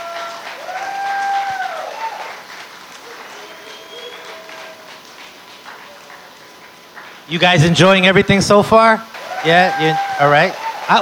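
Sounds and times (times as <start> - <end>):
crowd applauding: 0.0 - 8.4, 9.0 - 11.0
sliding whistles: 3.4 - 4.8
speech: 7.3 - 11.0.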